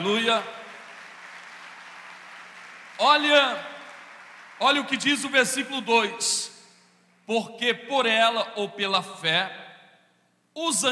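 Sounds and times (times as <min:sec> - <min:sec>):
speech: 0:00.0 - 0:00.6, 0:03.0 - 0:03.7, 0:04.6 - 0:06.6, 0:07.3 - 0:09.6, 0:10.6 - 0:10.9
audience applause: 0:00.0 - 0:05.1.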